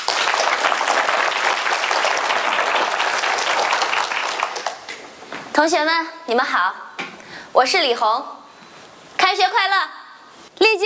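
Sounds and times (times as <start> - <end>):
audience applause welcoming speaker: 0.0 - 5.1
speech: 5.6 - 6.8, 7.6 - 8.3, 9.3 - 10.0, 10.6 - 10.8.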